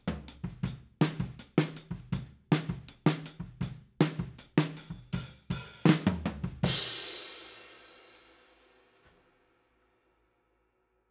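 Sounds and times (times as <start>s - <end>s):
drum overheads: 0.0s - 8.2s.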